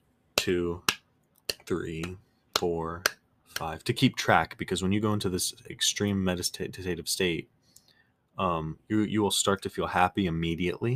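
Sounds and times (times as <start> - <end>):
speech: 0.4 - 0.9, 1.7 - 7.6, 8.4 - 10.9
hand slapping a leg: 0.4 - 3.8
person making wordless sounds: 0.4 - 3.9.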